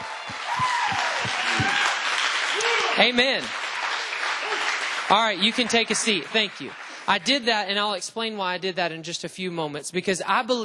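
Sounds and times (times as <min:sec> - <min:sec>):
audience shouting: 0:00.0 - 0:03.2
audience clapping: 0:00.0 - 0:07.8
speech: 0:03.0 - 0:03.6, 0:05.1 - 0:10.6.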